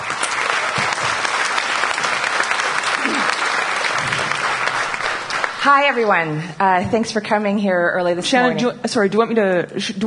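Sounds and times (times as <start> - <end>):
audience applause welcoming a speaker: 0.0 - 6.4
speech: 5.6 - 10.0.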